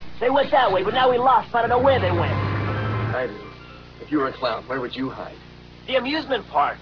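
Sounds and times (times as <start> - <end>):
amusement park ambience: 0.2 - 6.2.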